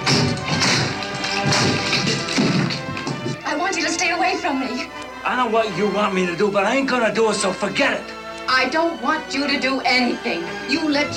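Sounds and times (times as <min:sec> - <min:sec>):
knocking on a door: 0:00.1 - 0:03.5
speech: 0:04.4 - 0:11.1.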